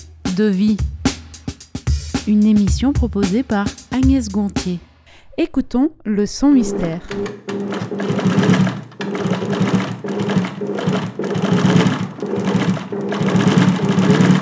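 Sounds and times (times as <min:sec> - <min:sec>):
speech: 0:00.4 - 0:01.0, 0:02.3 - 0:08.4
Camille's sewing machine needle clatter: 0:07.1 - 0:14.4.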